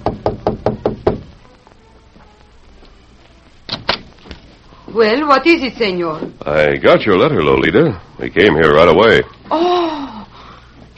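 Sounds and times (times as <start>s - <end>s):
knocking on a hotel room door: 0.0s - 1.4s
speech: 5.0s - 9.8s.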